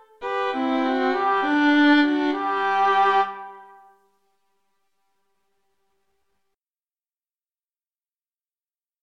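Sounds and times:
violins playing a pastorale: 0.0 - 3.9.

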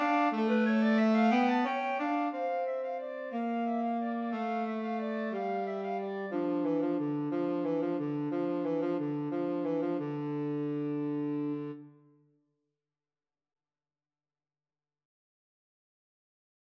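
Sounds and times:
tenor saxophone: 0.0 - 12.0
clarinet: 0.0 - 12.2.

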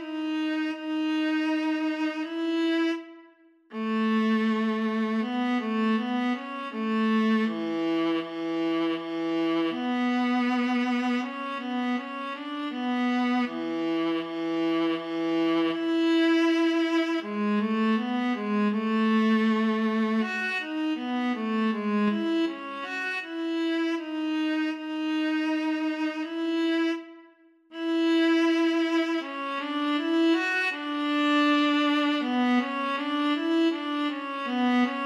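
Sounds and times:
cello in a viola and cello duet: 0.0 - 35.0
viola in a viola and cello duet: 0.0 - 35.0.

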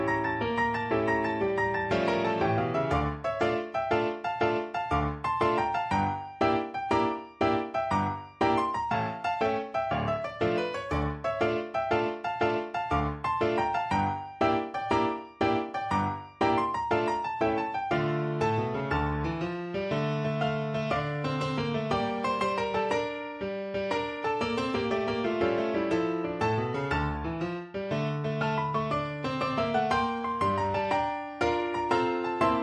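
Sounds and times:
tarantella piano piece: 0.0 - 32.6.

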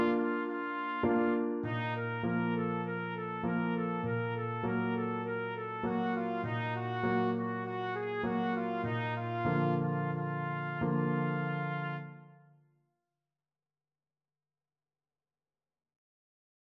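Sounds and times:
trumpet: 0.0 - 12.6.

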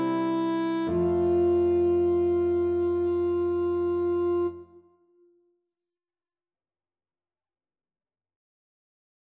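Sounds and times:
saxophone: 0.0 - 5.4.

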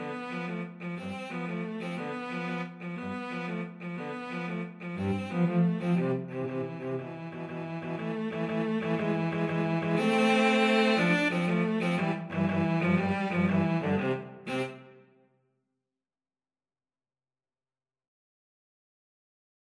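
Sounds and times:
cello trio: 0.0 - 15.0.

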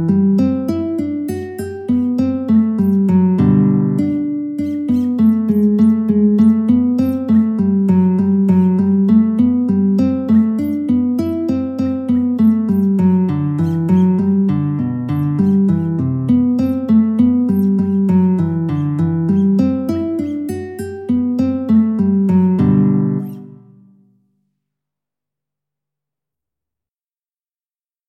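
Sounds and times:
guitar piece: 0.0 - 24.3.

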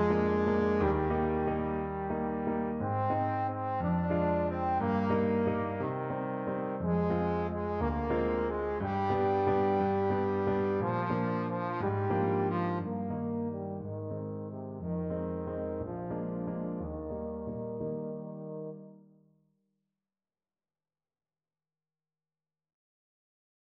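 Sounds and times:
trombone playing a waltz: 0.0 - 18.9.

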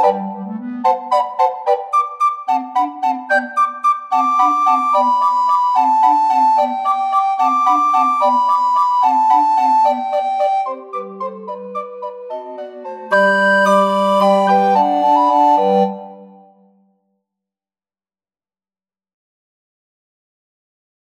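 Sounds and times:
recorder quartet: 0.0 - 16.7.

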